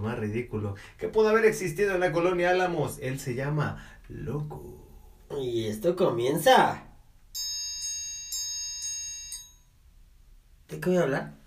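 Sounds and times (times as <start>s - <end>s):
speech: 0.0s - 6.9s, 10.7s - 11.4s
bell ringing: 7.3s - 9.8s.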